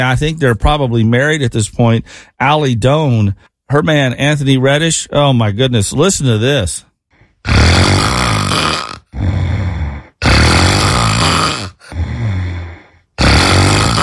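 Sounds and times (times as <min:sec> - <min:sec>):
speech: 0:00.0 - 0:09.6
loud snoring: 0:07.4 - 0:14.0.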